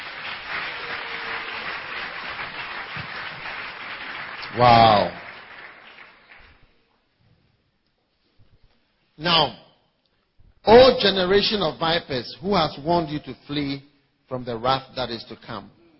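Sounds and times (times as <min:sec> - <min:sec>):
audience clapping hands: 0:00.0 - 0:06.8
speech: 0:04.5 - 0:05.2, 0:09.3 - 0:09.6, 0:10.6 - 0:15.8.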